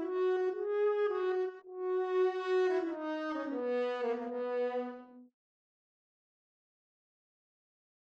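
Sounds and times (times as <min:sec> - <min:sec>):
horn: 0:00.0 - 0:05.3.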